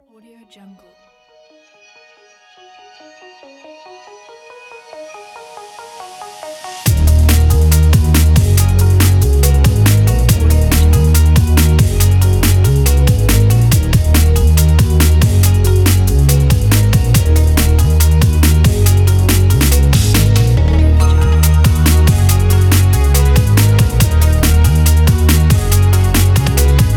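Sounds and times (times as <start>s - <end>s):
light breakbeat: 6.2s - 26.9s.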